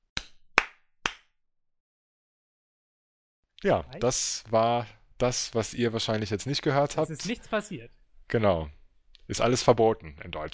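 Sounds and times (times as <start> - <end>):
sharp hand claps: 0.0 - 1.3
speech: 3.6 - 10.5.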